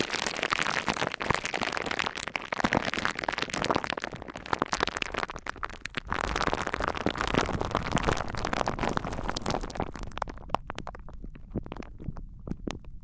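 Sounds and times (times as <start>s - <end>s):
crackling snaps and rustles from wood, cork, sponge, foam, glass and plastic: 0.0s - 13.0s.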